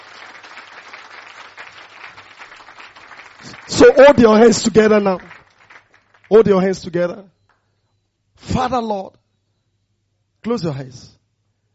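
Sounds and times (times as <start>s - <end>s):
audience clapping hands: 0.0s - 7.0s
speech: 3.4s - 5.3s, 6.3s - 7.4s, 8.4s - 9.2s, 10.4s - 11.2s.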